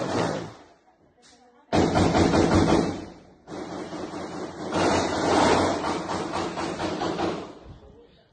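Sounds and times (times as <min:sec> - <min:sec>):
gunshots in a played video: 0:01.7 - 0:07.6.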